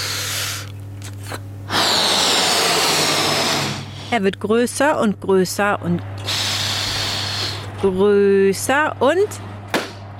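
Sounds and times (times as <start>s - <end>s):
air blown into a balloon: 0.0s - 4.2s, 6.2s - 7.7s
low hum: 0.0s - 10.1s
speech: 1.3s - 1.5s, 4.1s - 6.1s, 7.8s - 9.5s.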